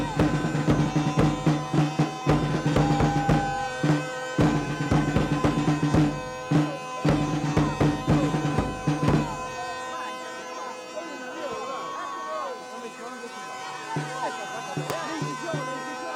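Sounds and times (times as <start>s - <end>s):
drum rhythms: 0.0s - 9.8s, 13.9s - 16.1s
laughter: 11.0s - 16.1s.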